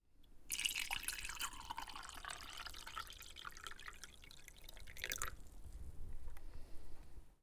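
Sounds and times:
water pouring into a mug: 0:00.5 - 0:05.5.

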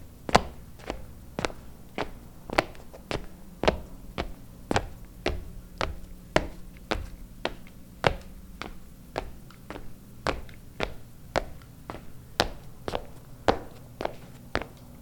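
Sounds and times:
footsteps on wooden floor: 0:00.3 - 0:14.9.

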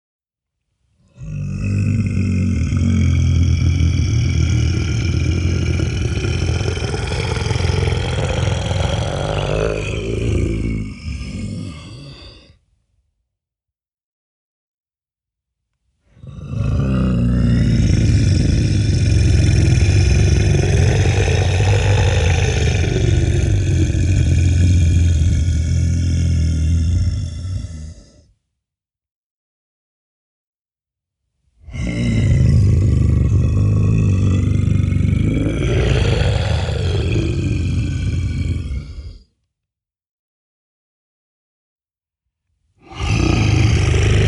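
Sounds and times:
monster roar: 0:01.0 - 0:12.6, 0:16.1 - 0:28.3, 0:31.6 - 0:39.3, 0:42.8 - 0:44.2.

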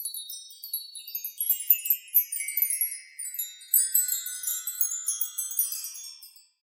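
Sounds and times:
chimes: 0:00.0 - 0:06.6.

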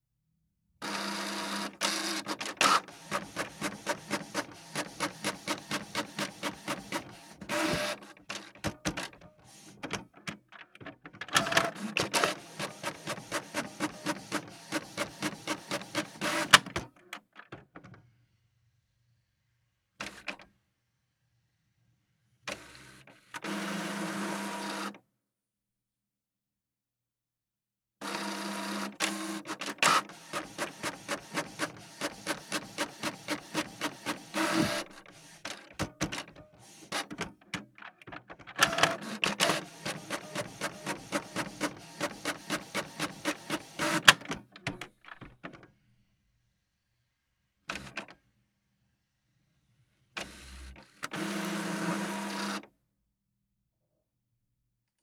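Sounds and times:
printer: 0:00.8 - 0:17.0, 0:20.0 - 0:20.4, 0:22.5 - 0:25.0, 0:28.0 - 0:45.8, 0:47.7 - 0:48.2, 0:50.2 - 0:52.7.

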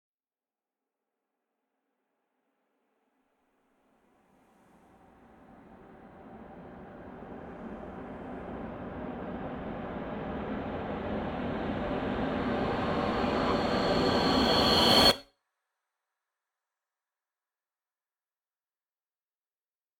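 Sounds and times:
horror music build-up: 0:05.4 - 0:15.2.

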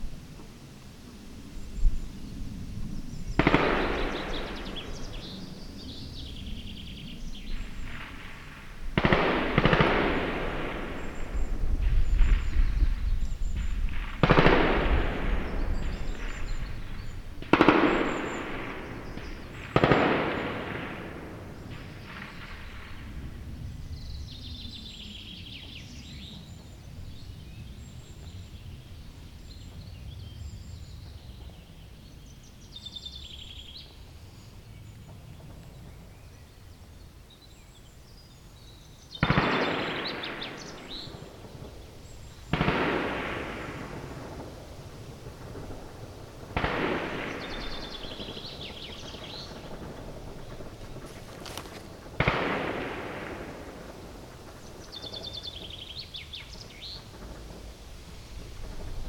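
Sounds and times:
gunfire: 0:03.3 - 0:05.5, 0:07.5 - 0:12.8, 0:13.5 - 0:23.4, 0:39.1 - 0:57.8.

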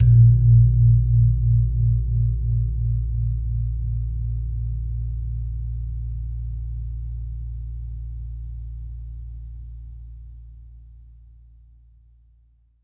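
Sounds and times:
gong wadon: 0:00.0 - 0:07.0.

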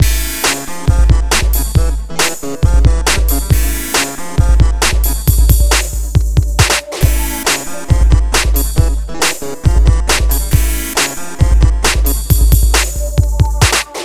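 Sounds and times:
ominous music loop: 0:00.0 - 0:14.0.

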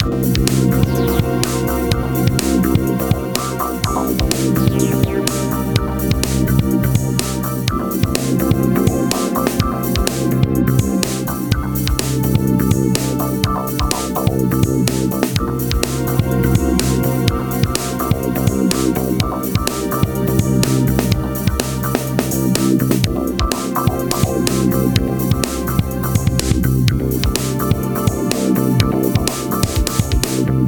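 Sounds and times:
music loop: 0:00.0 - 0:30.6.

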